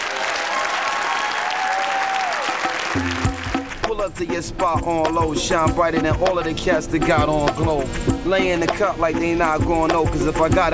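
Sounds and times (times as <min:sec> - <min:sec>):
crowd clapping and cheering: 0:00.0 - 0:04.0
speech: 0:03.0 - 0:03.3, 0:04.0 - 0:10.7.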